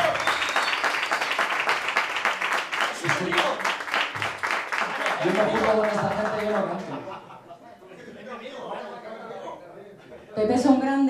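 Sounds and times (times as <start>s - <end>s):
crowd applause at a live event: 0.0s - 7.2s
laughter: 4.8s - 10.4s
speech: 5.2s - 7.2s, 10.4s - 11.0s.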